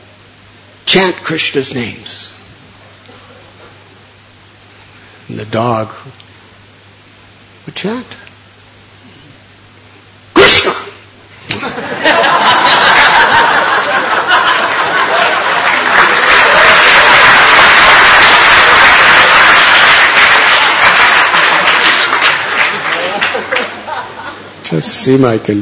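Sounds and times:
speech: 0:00.9 - 0:02.4, 0:05.4 - 0:06.2, 0:07.7 - 0:08.2, 0:24.8 - 0:25.6
scattered laughter and chuckles: 0:11.5 - 0:15.9, 0:23.2 - 0:24.5
crowd applause: 0:11.8 - 0:24.5.

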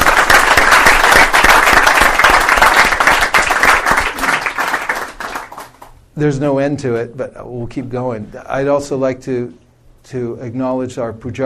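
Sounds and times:
audience applause: 0:00.0 - 0:05.9
speech: 0:06.2 - 0:11.4.

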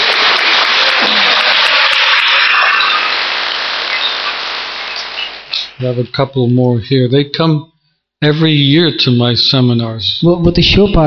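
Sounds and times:
audience clapping: 0:00.0 - 0:05.9
speech: 0:05.8 - 0:11.0.

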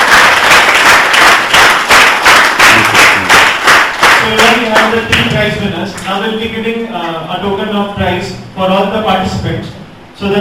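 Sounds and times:
audience clapping loudly: 0:00.0 - 0:05.6
speech: 0:05.6 - 0:10.3.

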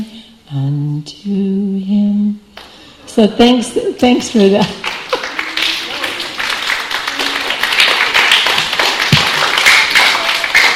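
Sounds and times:
speech: 0:00.5 - 0:02.0, 0:03.2 - 0:04.9
audience clapping: 0:04.2 - 0:10.7.

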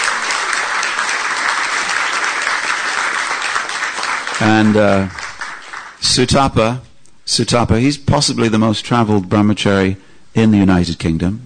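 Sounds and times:
crowd applause: 0:00.0 - 0:06.0
speech: 0:04.4 - 0:05.2, 0:06.0 - 0:11.4.

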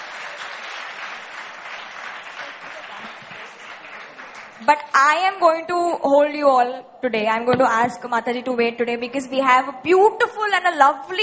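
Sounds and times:
audience applause: 0:00.0 - 0:04.9
speech: 0:04.6 - 0:11.2.

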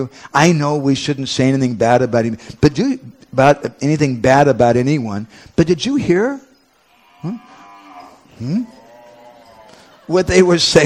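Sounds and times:
speech: 0:00.0 - 0:06.5, 0:07.2 - 0:07.5, 0:08.4 - 0:08.8, 0:10.1 - 0:10.8
cow mooing: 0:06.9 - 0:09.9.

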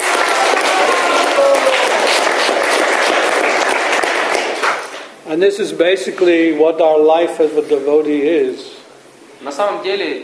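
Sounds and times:
audience applause: 0:00.0 - 0:05.1
speech: 0:05.3 - 0:08.8, 0:09.4 - 0:10.2.

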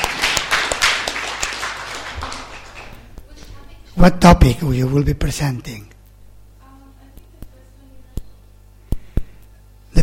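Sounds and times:
audience applause: 0:00.0 - 0:03.1
speech: 0:04.0 - 0:05.9.

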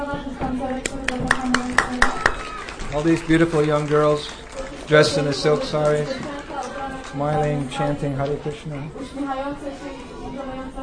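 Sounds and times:
audience clapping as a choir walks on stage: 0:00.7 - 0:08.4
speech: 0:02.9 - 0:06.4, 0:07.1 - 0:10.8.

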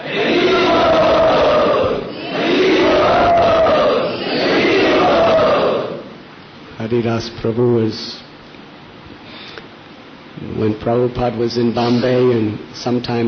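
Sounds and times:
audience at a devotional gathering calling out Hari Bol in unison: 0:00.0 - 0:06.2
speech: 0:06.9 - 0:08.2, 0:10.6 - 0:13.2.

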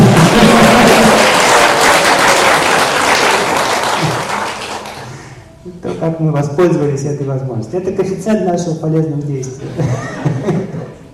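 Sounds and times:
laughter: 0:00.0 - 0:02.8, 0:09.6 - 0:11.1
crowd applause for a man being honoured: 0:00.0 - 0:05.3
speech: 0:06.1 - 0:10.6.

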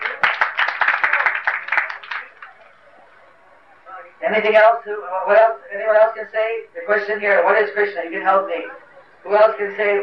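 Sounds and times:
loud applause: 0:00.0 - 0:03.2
speech: 0:04.2 - 0:10.0.

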